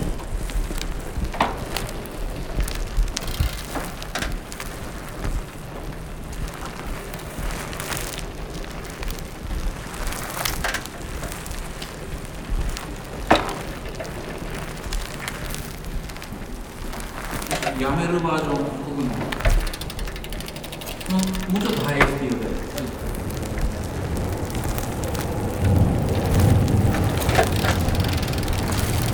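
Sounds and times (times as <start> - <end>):
bicycle riding: 0.0 - 29.1.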